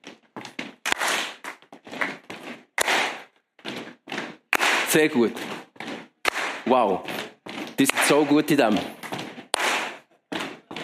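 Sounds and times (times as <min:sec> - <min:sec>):
feet stomping in rhythm: 0:00.0 - 0:10.8
hand claps in rhythm: 0:00.8 - 0:02.2, 0:02.8 - 0:03.3, 0:04.5 - 0:05.0, 0:06.2 - 0:06.7, 0:09.5 - 0:10.1
speech: 0:04.9 - 0:05.6, 0:06.7 - 0:09.0.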